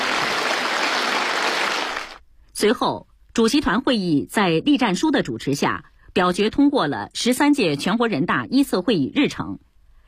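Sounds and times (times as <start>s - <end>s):
applause in a conference hall at a national legislative presidium meeting: 0.0s - 2.2s
speech: 2.6s - 9.7s.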